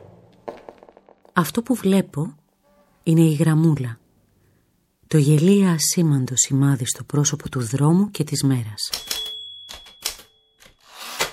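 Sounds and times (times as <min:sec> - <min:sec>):
speech: 0:01.4 - 0:02.4, 0:03.0 - 0:04.0, 0:05.1 - 0:09.2
typewriter typing on the speaker's own machine: 0:08.9 - 0:11.3.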